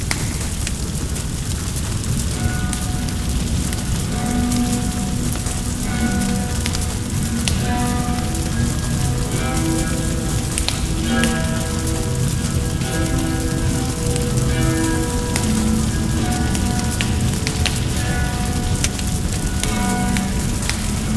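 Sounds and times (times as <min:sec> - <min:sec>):
house fire burning: 0:00.0 - 0:21.1.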